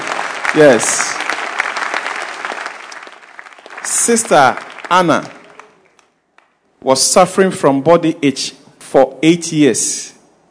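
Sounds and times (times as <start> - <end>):
audience clapping hands: 0.0 - 6.6
speech: 0.5 - 1.2, 4.0 - 5.4, 6.8 - 10.2.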